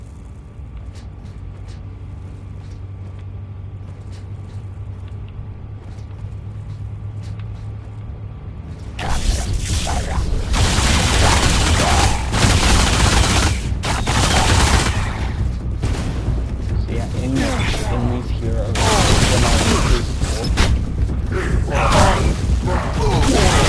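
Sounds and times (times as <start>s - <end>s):
voices: 4.1s - 15.7s, 16.6s - 23.6s
booms: 9.0s - 23.6s
video game gunfire shooting at enemies: 9.0s - 23.6s.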